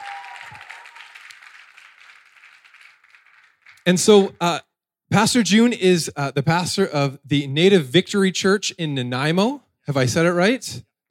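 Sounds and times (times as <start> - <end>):
faint applause at a church gathering: 0.0 - 4.3
speech: 3.9 - 11.0.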